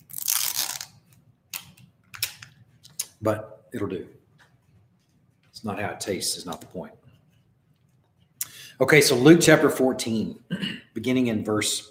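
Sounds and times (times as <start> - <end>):
communion supper kit wrapping crinkling and tearing open: 0.0 - 2.6
speech: 3.2 - 4.2, 5.6 - 7.0, 8.8 - 11.8.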